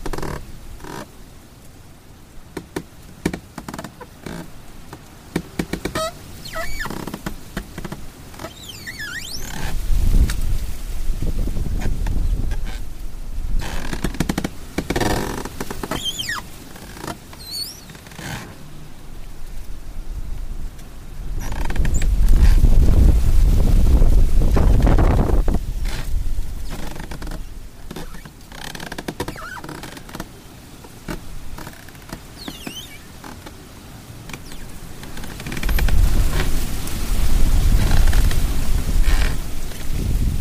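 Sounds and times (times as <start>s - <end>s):
windstorm around a treehouse: 4.6s - 16.8s, 18.6s - 27.9s, 33.0s - 40.3s.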